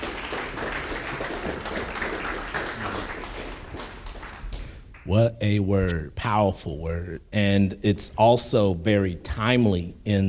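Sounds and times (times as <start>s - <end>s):
hands clapping: 0.0s - 5.2s
speech: 5.1s - 10.2s.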